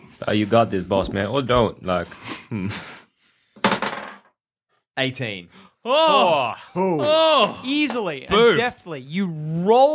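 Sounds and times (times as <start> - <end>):
speech: 0.2 - 3.0, 5.0 - 9.9
dice clattering onto a wooden-sounding table in a tabletop role-playing game: 3.7 - 4.3.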